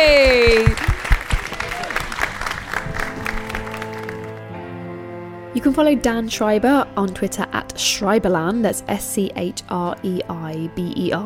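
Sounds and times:
audience applause: 0.0 - 4.5
speech: 5.6 - 11.2.

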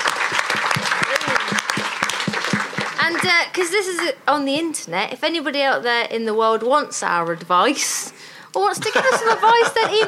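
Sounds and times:
round of applause: 0.0 - 3.3
speech: 3.2 - 10.0
laughter: 8.6 - 10.0.

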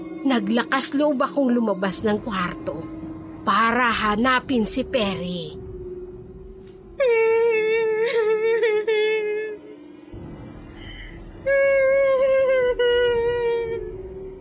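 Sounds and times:
speech: 0.2 - 5.6
woman crying in the dark: 7.0 - 9.8, 11.5 - 14.0.

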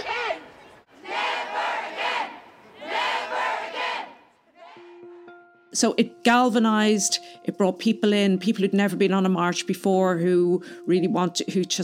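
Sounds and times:
protest crowd roaring a rhythmic chant: 0.0 - 4.9
speech: 5.8 - 11.8.

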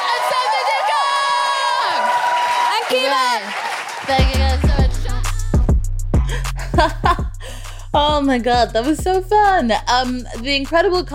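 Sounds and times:
clapping: 0.0 - 4.9
crowd cheering: 0.0 - 5.5
speech: 3.0 - 4.5, 6.8 - 7.2, 7.9 - 11.1
laughter: 6.3 - 7.6.

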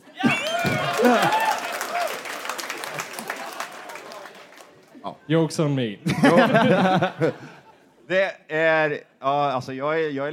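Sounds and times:
laughter: 0.0 - 1.6, 6.0 - 7.9
cheers and whoops: 0.1 - 4.4
audience applause: 0.2 - 5.0
speech: 1.0 - 1.4, 5.3 - 10.3.

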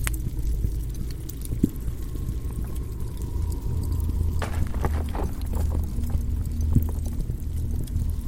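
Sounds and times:
deep churning lava and flame rumbling: 0.2 - 8.2
sharp cracks and knocks: 4.4 - 6.7.

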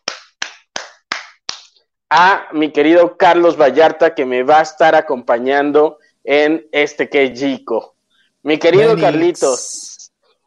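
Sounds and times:
applause: 0.0 - 1.7
speech: 2.1 - 10.0.

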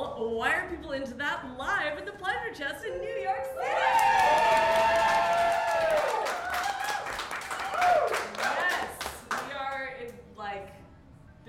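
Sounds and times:
speech: 0.2 - 5.0
live audience screaming at the Pleasure Chest in New York City: 3.6 - 8.3
live audience cheering and whooping at the Pleasure Chest in New York City: 3.6 - 9.0
people clapping: 3.7 - 9.9.

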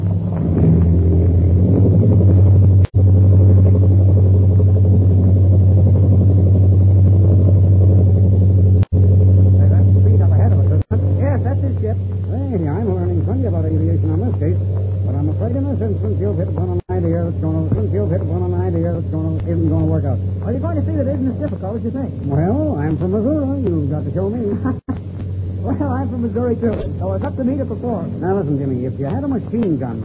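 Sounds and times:
airplane engine roaring during takeoff: 0.0 - 30.0
speech: 29.0 - 30.0.

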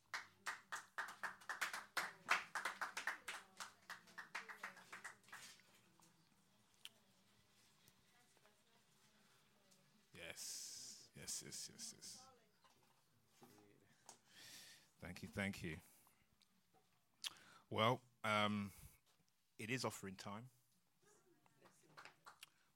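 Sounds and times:
group clapping: 0.0 - 6.0, 21.6 - 22.6
speech: 11.2 - 12.3, 15.0 - 15.9, 17.7 - 18.8, 19.6 - 20.6.

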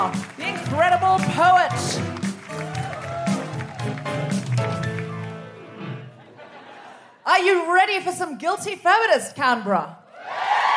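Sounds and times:
live audience applause: 0.0 - 6.2, 10.2 - 10.7
laughter: 5.8 - 7.2
speech: 7.4 - 10.0.

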